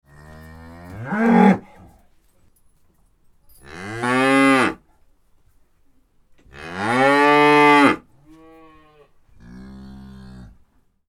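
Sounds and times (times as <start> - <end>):
cow mooing: 0.1 - 1.7, 3.7 - 4.8, 6.6 - 10.6.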